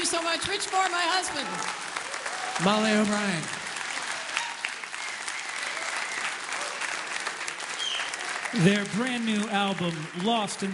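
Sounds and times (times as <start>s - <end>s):
audience applause: 0.0s - 10.7s
speech: 0.1s - 1.9s, 2.6s - 3.6s, 8.5s - 10.7s.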